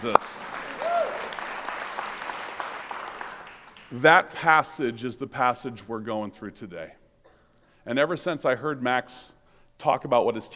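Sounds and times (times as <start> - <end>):
speech: 0.0 - 0.4, 3.9 - 7.0, 7.8 - 10.5
audience clapping: 0.0 - 4.2.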